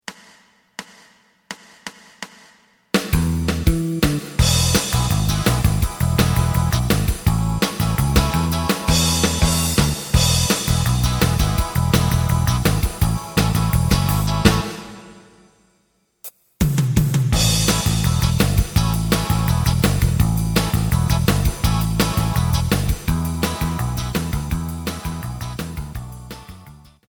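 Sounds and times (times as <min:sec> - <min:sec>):
lead melody: 0:03.3 - 0:15.3, 0:17.4 - 0:26.5.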